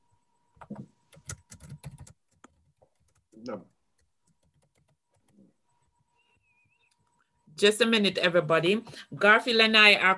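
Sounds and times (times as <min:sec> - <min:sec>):
fingers typing on a computer keyboard: 0:00.6 - 0:05.5
speech: 0:03.4 - 0:03.8, 0:07.6 - 0:10.1.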